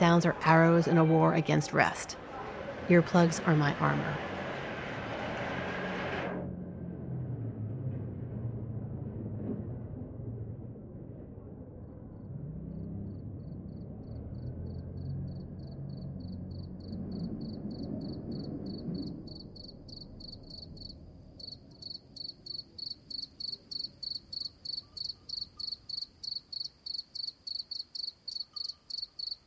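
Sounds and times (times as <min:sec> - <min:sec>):
speech: 0:00.2 - 0:02.2, 0:02.9 - 0:04.3
low rumble: 0:02.1 - 0:22.2
crickets trilling in a cork forest at night: 0:13.7 - 0:29.4.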